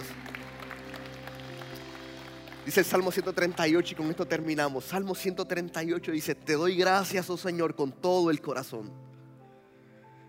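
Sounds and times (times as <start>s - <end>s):
audience applauding: 0.0s - 4.9s
speech: 2.6s - 9.1s.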